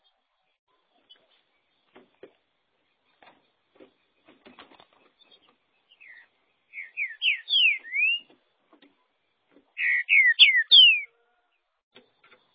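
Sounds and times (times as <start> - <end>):
green-winged saltator whistled song: 6.0 - 8.3, 9.8 - 11.1.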